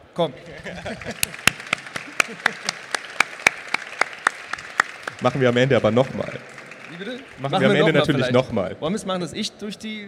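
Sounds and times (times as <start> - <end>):
speech: 0.2 - 3.0, 5.2 - 10.0
laughter: 0.4 - 3.2
audience applause: 0.5 - 8.4.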